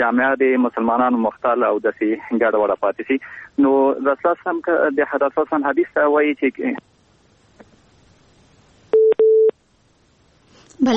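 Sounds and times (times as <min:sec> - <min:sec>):
speech: 0:00.0 - 0:06.9, 0:10.8 - 0:10.9
telephone line beeps after a dropped call: 0:08.9 - 0:09.5.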